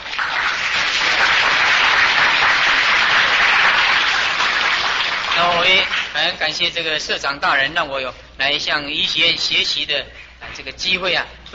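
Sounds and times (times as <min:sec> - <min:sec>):
audience applause: 0:00.0 - 0:06.2
speech: 0:06.2 - 0:11.5.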